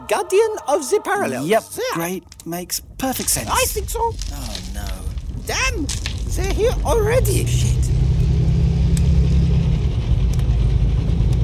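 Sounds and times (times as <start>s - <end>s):
speech: 0.1s - 4.9s, 5.5s - 7.8s
powerful engines rumbling above a bunker: 2.3s - 11.4s.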